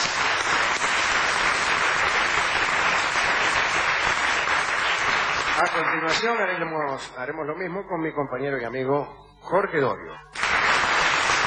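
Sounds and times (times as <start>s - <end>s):
audience applause: 0.0s - 6.2s, 10.4s - 11.4s
speech: 5.6s - 10.4s.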